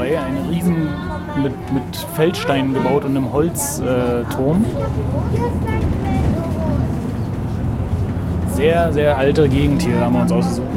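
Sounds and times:
express bus engine rumble and road noise: 0.0 - 10.7
speech: 0.1 - 6.0, 8.6 - 10.7.

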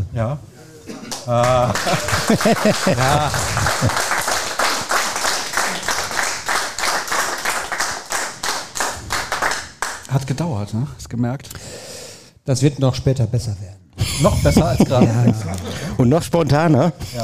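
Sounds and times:
speech: 0.2 - 0.5, 1.3 - 4.2, 10.1 - 11.7, 12.5 - 17.2
laughter: 1.0 - 4.4, 14.0 - 16.0
live audience applause: 1.2 - 10.0.

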